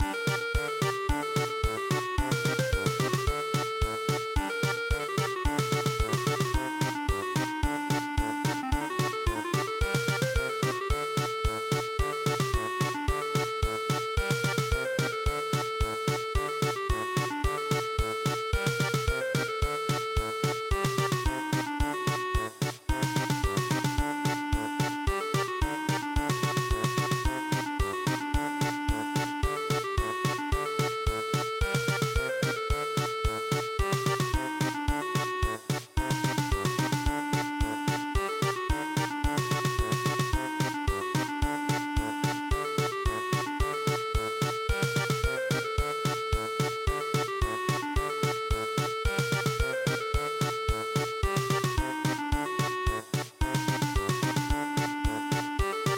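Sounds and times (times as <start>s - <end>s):
polka music: 0.0s - 55.9s.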